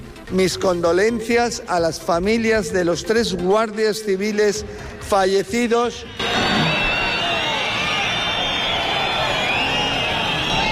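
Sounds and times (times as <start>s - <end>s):
speech: 0.3s - 6.4s
crowd booing: 6.1s - 10.6s.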